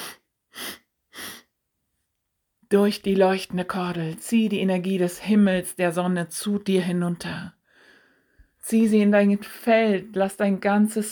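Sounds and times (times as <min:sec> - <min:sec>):
deep breathy inhalations during a guided breathing exercise: 0:00.0 - 0:01.5, 0:07.6 - 0:08.6
speech: 0:02.7 - 0:07.6, 0:08.7 - 0:11.0.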